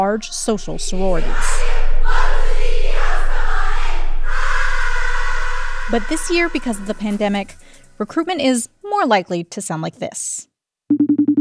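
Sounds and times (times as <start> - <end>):
speech: 0.0 - 1.9, 5.9 - 10.5
sorority recruitment cheering and chanting: 0.8 - 7.4.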